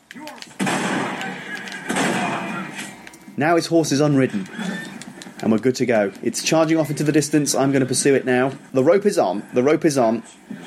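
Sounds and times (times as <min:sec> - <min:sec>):
sawn-off shotgun blast in video game: 0:00.6 - 0:02.9
speech: 0:03.4 - 0:04.6, 0:05.4 - 0:10.5.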